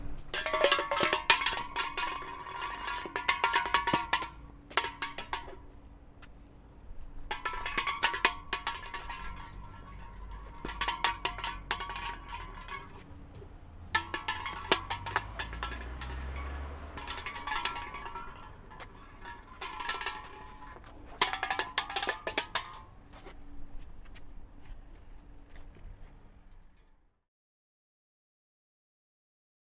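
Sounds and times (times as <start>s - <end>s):
can being kicked like a football: 0.3s - 5.8s, 7.3s - 22.9s.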